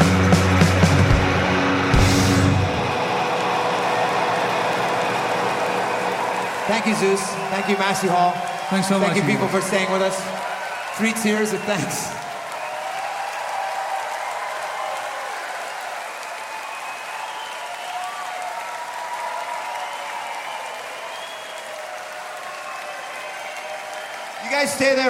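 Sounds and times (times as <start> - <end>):
concert audience applauding: 0.0 - 25.0
speech: 6.8 - 10.4, 11.0 - 12.2, 24.6 - 25.0.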